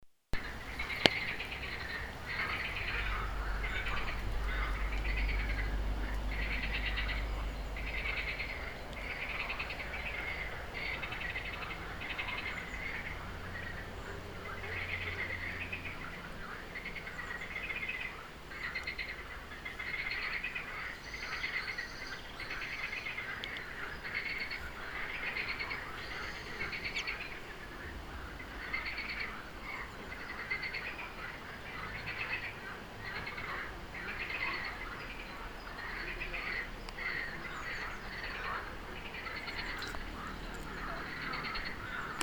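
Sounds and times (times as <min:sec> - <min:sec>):
frogs croaking: 0:00.4 - 0:42.2.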